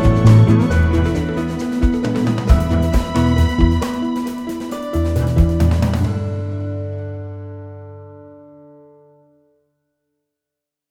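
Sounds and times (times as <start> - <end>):
upbeat positive commercial music: 0.0 - 7.0.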